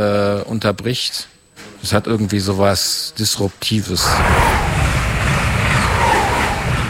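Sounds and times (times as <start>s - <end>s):
speech: 0.0s - 4.8s
train passing: 4.0s - 6.8s.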